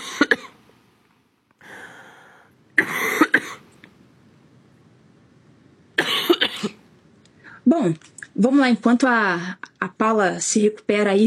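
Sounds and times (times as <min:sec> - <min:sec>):
harsh coughing fit: 0:00.0 - 0:00.6, 0:02.8 - 0:03.7, 0:06.0 - 0:06.8
speech: 0:07.7 - 0:11.2.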